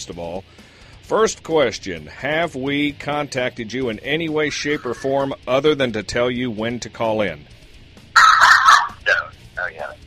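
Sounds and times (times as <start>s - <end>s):
speech: 0.0s - 7.6s
excited dog barking and yipping: 8.2s - 9.3s.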